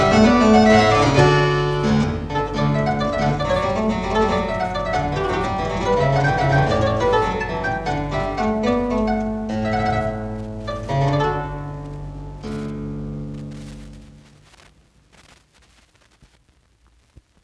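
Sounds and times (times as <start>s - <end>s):
harpsichord suite: 0.0s - 13.3s.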